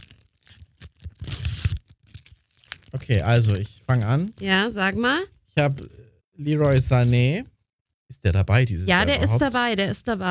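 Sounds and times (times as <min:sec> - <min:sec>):
pack of football trading cards being torn open: 0:00.0 - 0:03.6
speech: 0:02.9 - 0:07.5, 0:08.2 - 0:10.2.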